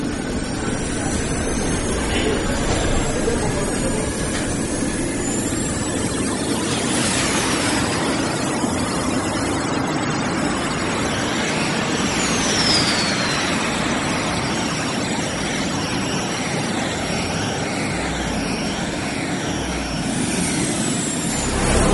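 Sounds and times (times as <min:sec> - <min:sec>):
downward sweeping whine: 0:00.0 - 0:09.2, 0:16.7 - 0:21.9
cartoon space shuttle engine roar launching toward Mars: 0:00.0 - 0:21.9.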